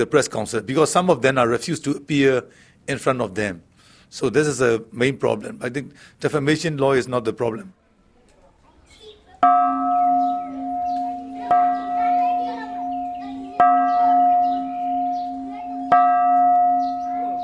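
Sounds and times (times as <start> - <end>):
speech: 0.0 - 7.8
temple bells rung at Shwedagon Pagoda in Yangon: 9.4 - 17.4.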